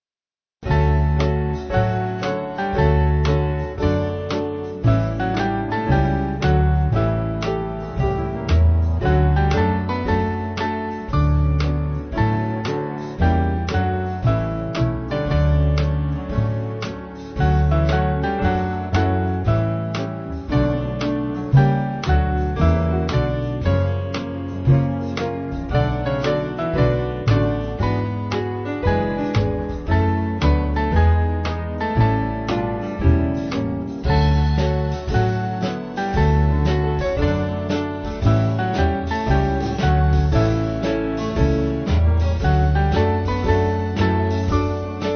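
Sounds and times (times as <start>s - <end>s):
band backing music: 0.6s - 45.1s.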